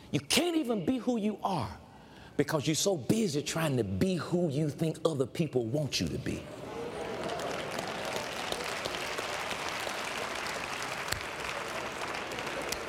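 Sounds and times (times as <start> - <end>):
speech: 0.1 - 1.8, 2.4 - 6.7
audience clapping: 6.7 - 12.8.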